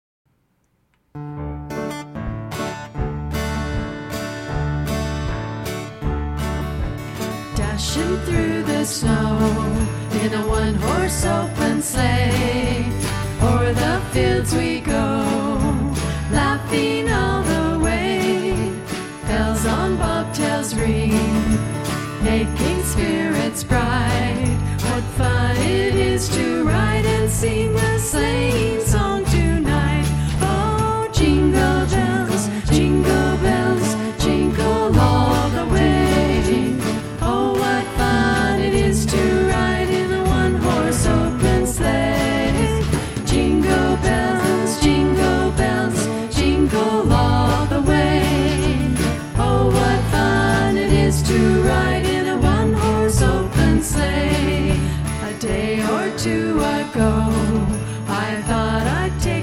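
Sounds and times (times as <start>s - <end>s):
Christmas song: 1.1s - 59.4s.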